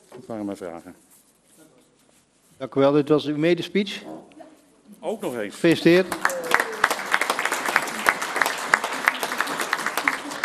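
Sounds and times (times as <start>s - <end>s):
speech: 0.3s - 1.2s, 2.6s - 4.3s, 4.9s - 6.3s
applause for a council member's first speech: 5.9s - 10.4s.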